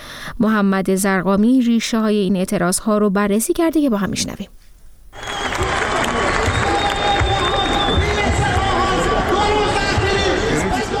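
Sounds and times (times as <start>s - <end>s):
speech: 0.2s - 4.6s
crowd of Isfahan citizens clapping on the dry Zayandeh Rud riverbed: 5.2s - 10.9s.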